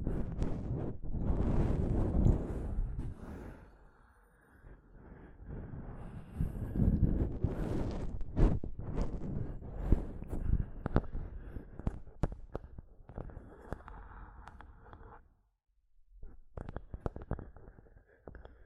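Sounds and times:
microphone scratching with low rumbling scrapes and thuds: 0.0 - 3.2, 6.4 - 12.8.

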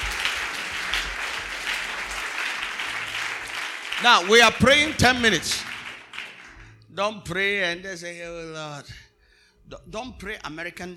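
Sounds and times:
crowd clapping hands: 0.0 - 6.8
speech: 4.0 - 5.7, 7.0 - 9.0, 9.7 - 10.9.

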